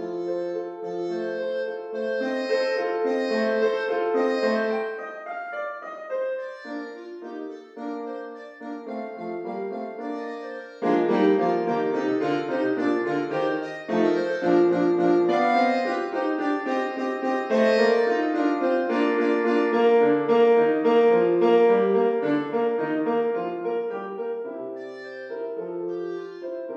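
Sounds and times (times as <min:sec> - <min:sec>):
two clarinets and piano playing a finale: 0:00.0 - 0:26.7.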